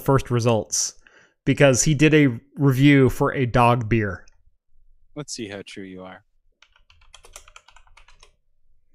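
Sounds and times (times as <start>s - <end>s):
speech: 0.0s - 4.3s, 5.2s - 6.3s
computer keyboard typing a web search: 6.6s - 8.4s.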